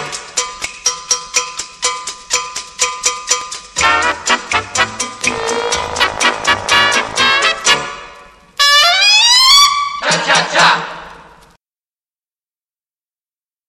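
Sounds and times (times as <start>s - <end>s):
trumpet cha cha cha music: 3.8s - 10.6s.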